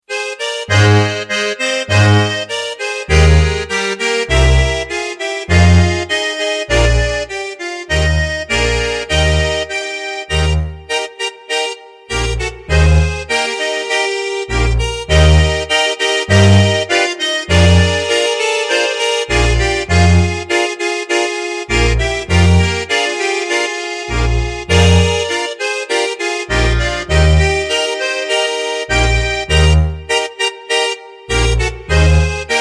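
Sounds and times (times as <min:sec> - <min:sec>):
small accordion: 0:00.0 - 0:32.6.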